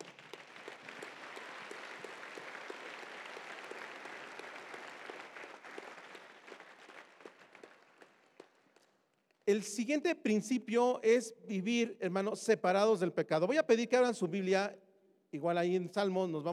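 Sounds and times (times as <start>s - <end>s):
audience applause: 0.0s - 8.9s
speech: 9.5s - 16.5s.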